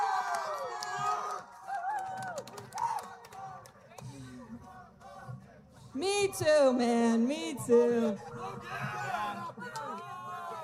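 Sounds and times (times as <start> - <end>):
audience applause: 0.0 - 3.8
speech: 6.0 - 9.4.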